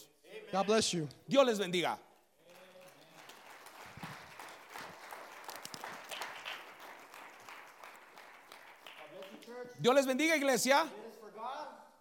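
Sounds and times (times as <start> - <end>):
speech: 0.0 - 2.1, 9.8 - 11.6
audience applause: 2.5 - 9.4.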